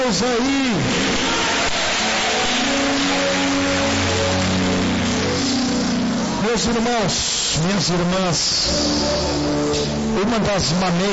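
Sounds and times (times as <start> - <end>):
speech: 0.1 - 1.2, 6.5 - 11.1
audience applauding: 0.8 - 6.4.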